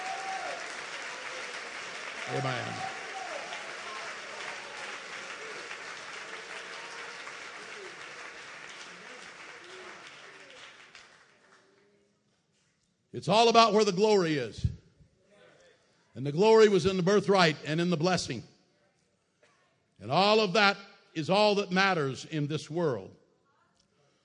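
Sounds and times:
audience clapping hands in praise: 0.0 - 11.8
speech: 2.3 - 2.9, 13.2 - 14.7, 16.2 - 18.5, 20.0 - 23.2.

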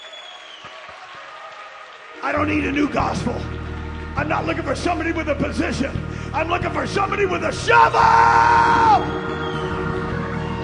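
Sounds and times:
audience applause: 0.0 - 5.9, 8.7 - 10.6
speech: 2.2 - 3.6, 4.2 - 9.6.

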